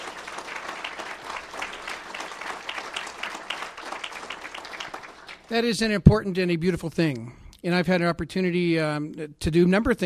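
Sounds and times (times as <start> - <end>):
crowd clapping: 0.0 - 5.8
speech: 5.5 - 10.0.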